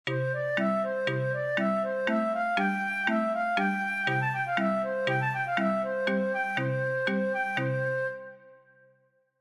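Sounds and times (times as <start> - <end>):
accompanied melody: 0.1 - 8.7.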